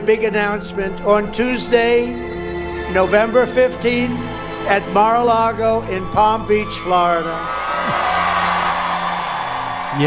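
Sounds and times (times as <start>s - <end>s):
speech: 0.0s - 2.3s, 2.9s - 8.1s
rally crowd cheering: 5.1s - 10.0s.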